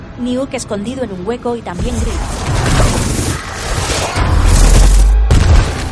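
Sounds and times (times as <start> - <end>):
speech: 0.2 - 3.0
heavy crashes and booms as a creature smashes through tunnel walls in a film: 1.8 - 5.9.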